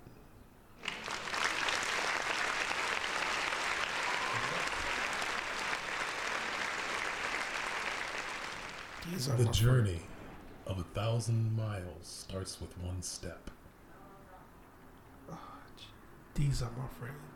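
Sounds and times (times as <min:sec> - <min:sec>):
round of applause sound effect: 0:00.8 - 0:09.4
speech: 0:09.2 - 0:10.1, 0:10.7 - 0:13.6, 0:16.4 - 0:17.3.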